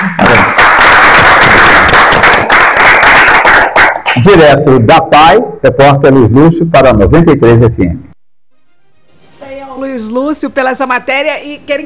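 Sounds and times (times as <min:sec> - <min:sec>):
round of applause: 0:00.0 - 0:04.3
speech: 0:04.2 - 0:08.1, 0:10.0 - 0:11.8.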